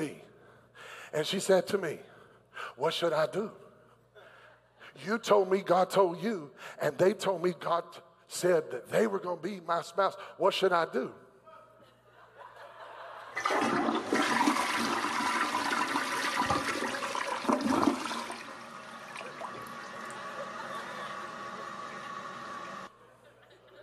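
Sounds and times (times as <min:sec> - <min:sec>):
speech: 0:01.1 - 0:03.6, 0:04.9 - 0:11.2
laughter: 0:11.4 - 0:13.7, 0:20.0 - 0:23.8
toilet flushing: 0:13.4 - 0:22.9.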